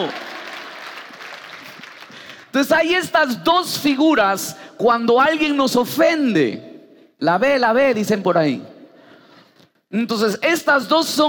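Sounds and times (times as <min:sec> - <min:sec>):
speech: 0:00.0 - 0:00.3, 0:02.5 - 0:08.7, 0:09.9 - 0:11.2
audience applause: 0:00.0 - 0:02.5.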